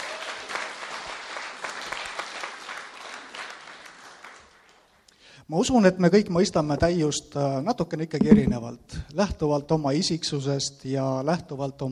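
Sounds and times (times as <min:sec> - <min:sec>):
audience clapping: 0:00.0 - 0:05.0
speech: 0:05.5 - 0:11.9.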